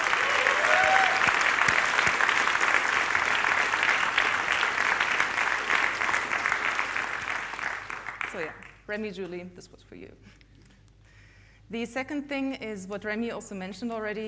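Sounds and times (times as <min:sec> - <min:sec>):
audience applause: 0:00.0 - 0:08.7
speech: 0:08.9 - 0:10.4, 0:11.7 - 0:14.2.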